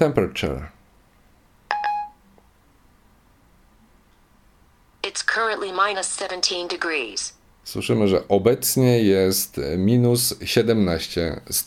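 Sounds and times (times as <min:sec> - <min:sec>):
speech: 0:00.0 - 0:00.8, 0:05.1 - 0:11.6
phone blips while connecting to internet: 0:01.7 - 0:02.2.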